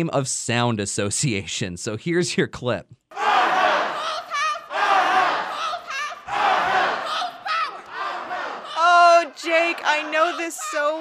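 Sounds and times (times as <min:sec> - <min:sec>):
speech: 0:00.0 - 0:03.3
protesters shouting in the Michigan state capitol rotunda: 0:03.1 - 0:10.9.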